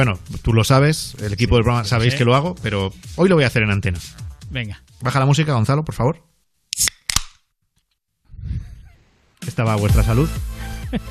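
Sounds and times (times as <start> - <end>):
speech: 0.0 - 6.9, 9.6 - 11.0
beer can being opened: 6.7 - 7.4.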